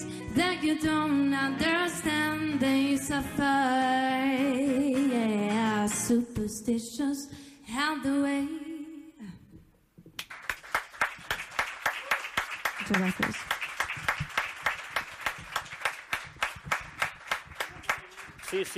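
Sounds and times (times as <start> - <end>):
speech: 0.4 - 8.6, 12.9 - 13.4, 18.5 - 18.7
audience applause: 10.2 - 18.7.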